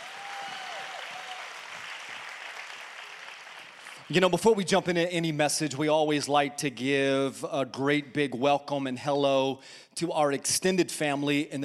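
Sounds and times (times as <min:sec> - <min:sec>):
church congregation clapping: 0:00.0 - 0:04.3
speech: 0:04.1 - 0:11.6.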